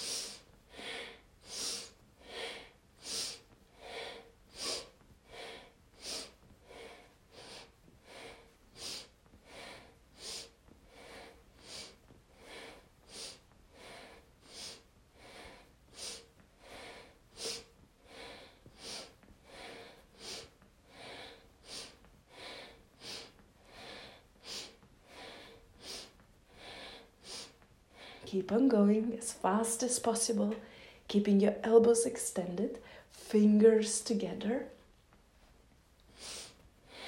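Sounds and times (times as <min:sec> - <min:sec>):
fast forceful breathing through the nose during an arm exercise: 0:00.0 - 0:28.3
speech: 0:28.3 - 0:34.8.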